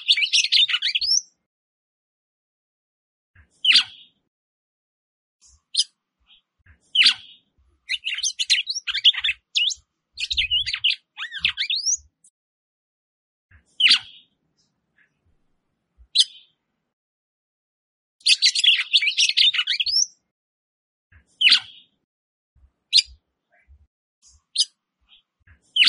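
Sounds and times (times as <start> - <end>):
Red-cowled Cardinal song: 0.0 - 1.4, 3.4 - 4.2, 5.4 - 12.3, 13.5 - 14.4, 16.1 - 16.6, 18.2 - 20.2, 21.1 - 22.0, 22.9 - 25.8.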